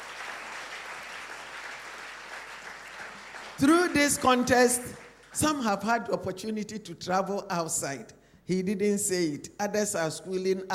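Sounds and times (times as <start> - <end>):
people clapping: 0.0 - 5.6
speech: 3.6 - 10.7.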